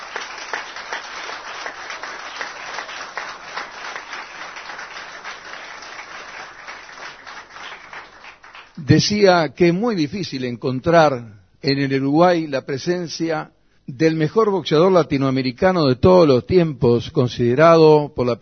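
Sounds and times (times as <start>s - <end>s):
audience applause: 0.0s - 8.8s
speech: 8.9s - 18.3s.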